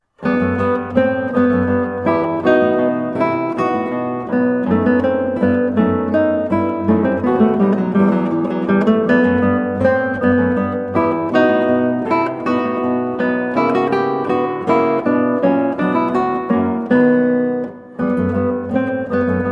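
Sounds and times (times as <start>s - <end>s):
guitar siciliana: 0.0s - 19.5s.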